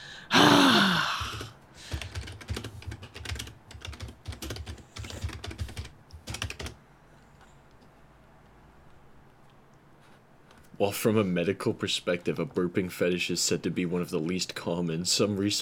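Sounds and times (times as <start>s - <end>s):
breathy sigh: 0.0s - 2.1s
computer keyboard typing: 1.2s - 6.8s
speech: 10.8s - 15.6s.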